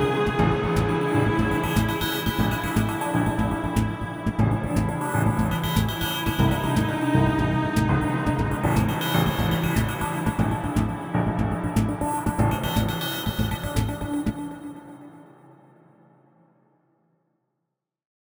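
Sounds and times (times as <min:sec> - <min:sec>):
ambient fight intensity music: 0:00.0 - 0:14.4.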